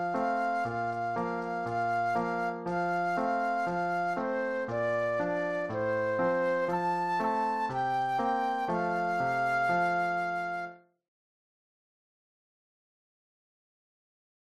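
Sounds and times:
flute solo of a children's song: 0.0 - 10.9.

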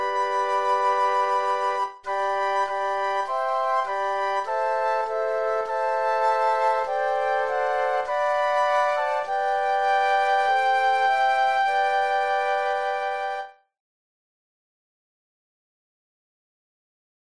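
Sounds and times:
flute quartet: 0.0 - 13.6.

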